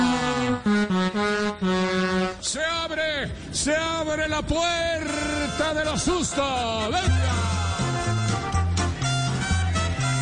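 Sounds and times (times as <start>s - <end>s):
race coordinator's horn blowing: 0.0s - 2.7s, 5.0s - 10.2s
speech: 3.2s - 7.6s.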